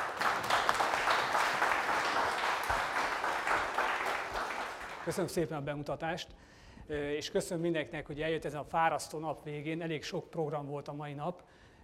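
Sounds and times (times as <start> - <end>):
audience applause: 0.0 - 5.3
speech: 5.1 - 11.6.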